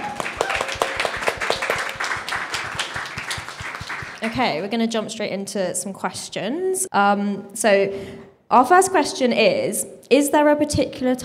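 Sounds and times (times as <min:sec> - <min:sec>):
audience applause: 0:00.0 - 0:04.4
speech: 0:04.2 - 0:11.2.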